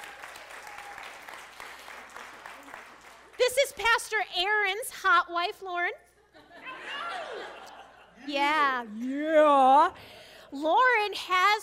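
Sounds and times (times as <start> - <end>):
applause: 0.0 - 3.8
speech: 3.5 - 6.0, 8.2 - 11.6
laughter: 6.3 - 8.3.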